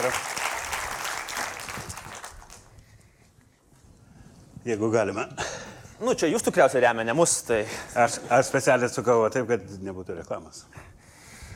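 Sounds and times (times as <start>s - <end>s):
speech: 0.0s - 0.4s, 4.7s - 11.0s
audience applause welcoming a guest: 0.0s - 2.7s.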